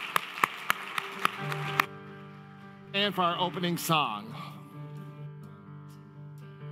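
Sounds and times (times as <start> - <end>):
audience applause: 0.0 - 1.9
speech: 3.0 - 4.6.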